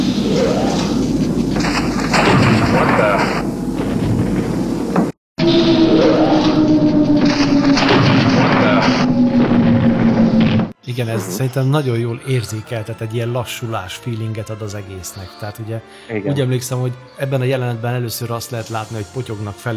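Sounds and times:
loud dense rumbling roar: 0:00.0 - 0:04.6, 0:05.4 - 0:10.8
humming tone sinking in pitch, spaceship leaving hyperspace: 0:05.4 - 0:10.7
speech: 0:11.0 - 0:19.7.

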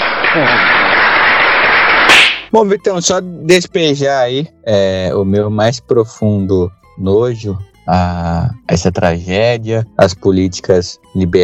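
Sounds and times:
group applause: 0:00.0 - 0:02.5
speech: 0:00.4 - 0:00.7, 0:02.5 - 0:11.4.

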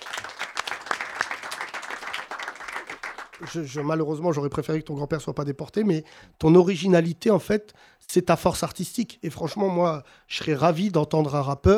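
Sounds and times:
audience applause: 0:00.0 - 0:04.0
speech: 0:03.4 - 0:11.7.

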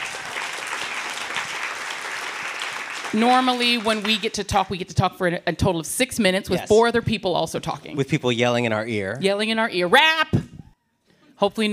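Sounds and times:
audience applause: 0:00.0 - 0:04.4
speech: 0:03.1 - 0:10.4, 0:11.4 - 0:11.7.

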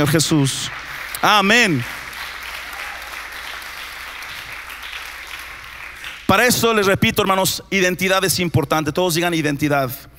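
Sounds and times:
speech: 0:00.0 - 0:02.0, 0:06.3 - 0:10.1
crowd clapping: 0:00.0 - 0:06.8.

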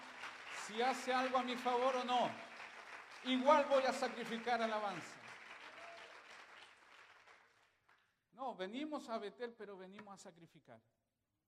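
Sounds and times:
audience applause: 0:00.0 - 0:08.0
speech: 0:00.7 - 0:02.4, 0:03.2 - 0:05.2, 0:08.4 - 0:11.0.

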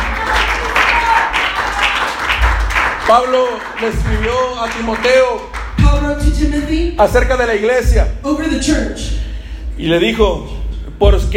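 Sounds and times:
audience applause: 0:00.0 - 0:05.8
speech: 0:03.1 - 0:09.2, 0:09.8 - 0:11.3.

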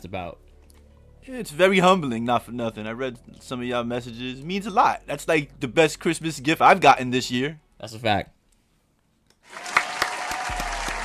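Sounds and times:
speech: 0:00.0 - 0:00.5, 0:01.2 - 0:08.4
applause, clapping: 0:09.4 - 0:11.0.

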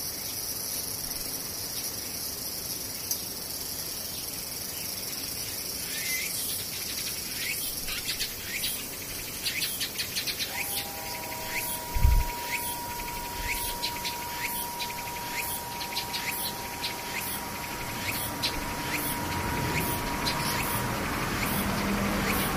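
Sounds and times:
cicadas buzzing: 0:02.1 - 0:22.5
rapid clicking pulses: 0:10.5 - 0:22.5
thin even tone: 0:10.5 - 0:22.5.

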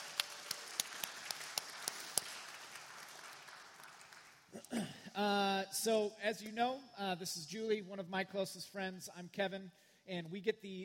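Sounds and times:
audience applause: 0:00.0 - 0:04.5
speech: 0:04.7 - 0:10.8.

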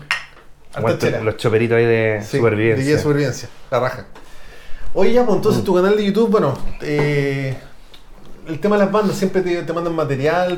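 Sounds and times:
glasses clinking in a toast: 0:00.0 - 0:00.5
speech: 0:00.7 - 0:04.2, 0:04.9 - 0:07.7, 0:08.5 - 0:10.5.

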